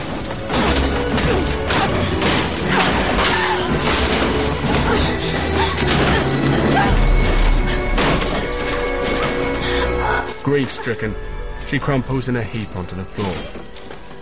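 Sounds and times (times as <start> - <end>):
crowbar smashing jars and sculptures on a work table: 0.0 - 9.8
speech: 10.5 - 14.0.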